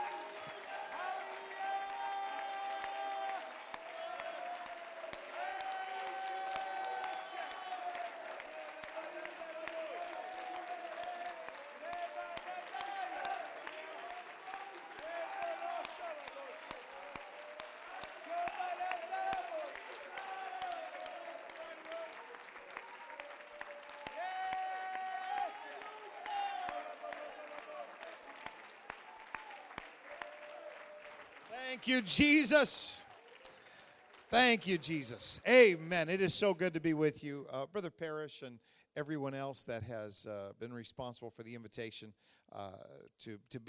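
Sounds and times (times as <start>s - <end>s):
audience cheering and shouting: 0.0s - 33.2s
audience clapping: 0.0s - 36.8s
speech: 31.6s - 33.0s, 34.4s - 43.6s.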